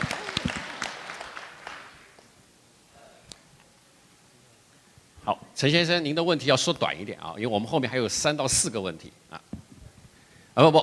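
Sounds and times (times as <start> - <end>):
audience applause: 0.0 - 2.3
speech: 5.3 - 9.4, 10.6 - 10.8.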